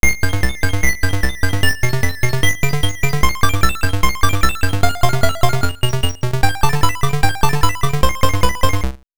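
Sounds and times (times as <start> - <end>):
Atari intro music: 0.0 - 9.0.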